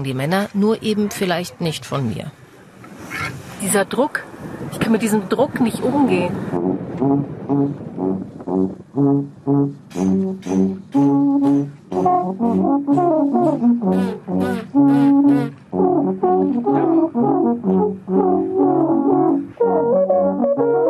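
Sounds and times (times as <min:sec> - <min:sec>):
speech: 0:00.0 - 0:02.4, 0:03.6 - 0:20.8
clumsy alphorn playing: 0:06.5 - 0:20.8.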